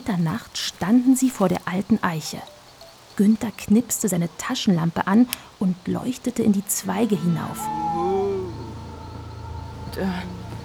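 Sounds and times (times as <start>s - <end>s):
speech: 0.0s - 2.6s, 3.2s - 7.9s, 10.0s - 10.4s
faint steady hum: 0.0s - 10.6s
voice imitating a giant owl hooting: 7.0s - 10.6s.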